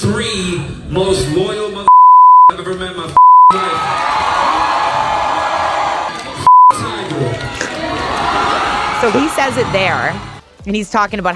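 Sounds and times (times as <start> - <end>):
speech: 0.1 - 1.8, 9.0 - 11.3
crowd chanting: 3.6 - 10.4.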